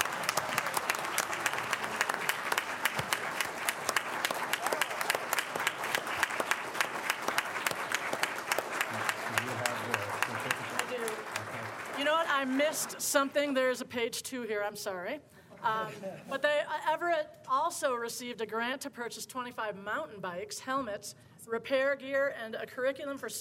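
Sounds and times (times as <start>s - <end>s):
audience applause: 0.0s - 13.0s
speech: 12.8s - 23.3s.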